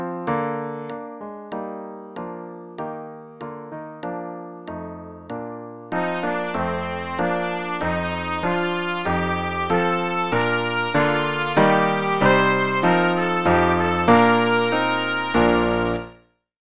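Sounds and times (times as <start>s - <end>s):
trumpet play-along at 96 bpm: 5.9s - 16.2s.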